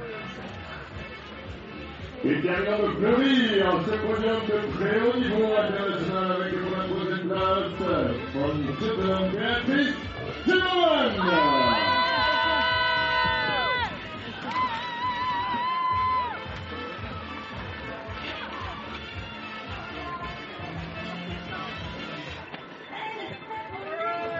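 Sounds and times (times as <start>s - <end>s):
speech: 2.2s - 10.1s
crowd cheering and shouting: 10.9s - 24.3s
crowd applauding at podium: 11.1s - 19.3s.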